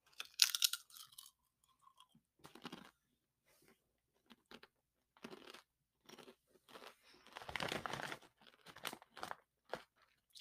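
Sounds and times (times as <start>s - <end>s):
spicy Popcorners chips crunching being eaten: 0.1s - 1.4s, 2.4s - 2.9s, 4.3s - 10.0s.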